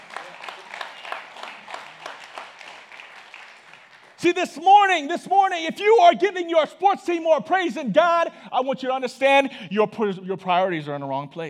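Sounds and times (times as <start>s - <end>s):
golf clap from audience: 0.0s - 4.2s
speech: 4.2s - 11.4s.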